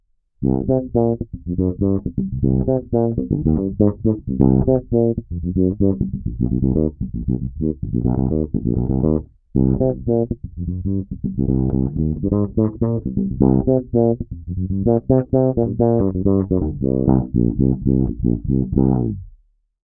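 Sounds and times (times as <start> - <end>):
Octafilter filtered synthesizer sound: 0.4 - 19.2.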